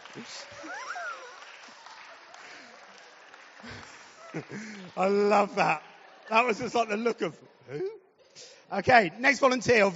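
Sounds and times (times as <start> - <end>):
crowd applauding: 0.0 - 7.3
speech: 0.2 - 0.8, 3.6 - 9.9
whoops and cheers: 0.6 - 2.4.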